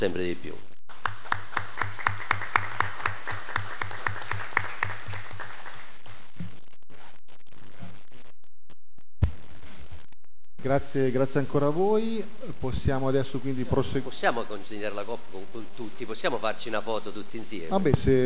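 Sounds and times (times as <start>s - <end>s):
speech: 0.0s - 0.7s, 10.6s - 18.2s
audience applause: 0.9s - 6.0s.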